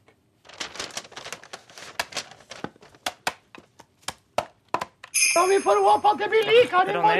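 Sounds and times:
crinkly paper being wrapped around a gift: 0.4 - 3.4
speech: 5.4 - 7.1.

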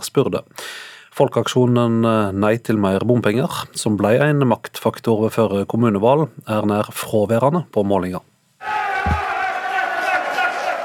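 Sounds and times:
speech: 0.2 - 9.2
crowd cheering at election night party: 8.6 - 10.8
low thump: 9.0 - 9.3.

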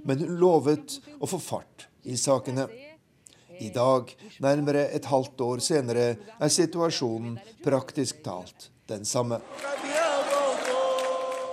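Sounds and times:
speech: 0.1 - 2.9, 3.6 - 9.8
large crowd of fans cheering and chanting: 9.4 - 11.5.

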